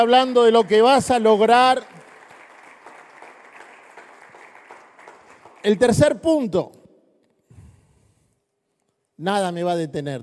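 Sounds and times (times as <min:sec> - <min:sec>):
speech: 0:00.0 - 0:01.9, 0:05.6 - 0:06.8, 0:09.2 - 0:10.2
audience applauding: 0:00.0 - 0:06.2.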